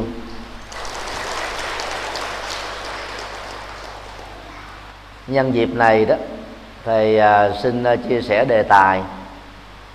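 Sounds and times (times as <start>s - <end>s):
audience applause: 0.7s - 4.9s
speech: 5.3s - 9.2s.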